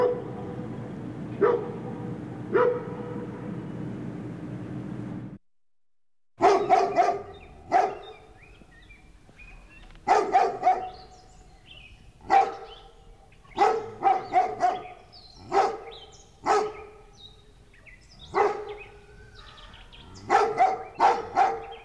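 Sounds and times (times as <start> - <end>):
dog barking deep woofs: 0.0 - 0.7, 1.4 - 3.5, 6.4 - 8.3, 10.0 - 11.2, 12.2 - 17.1, 18.2 - 21.8
small birds chirping and twittering: 6.4 - 21.8.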